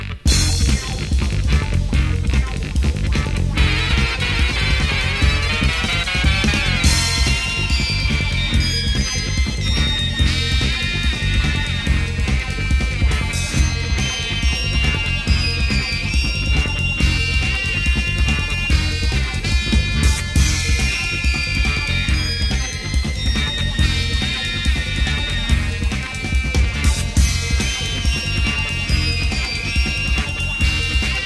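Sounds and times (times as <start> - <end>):
electronic keyboard orchestra: 0.2 - 31.2.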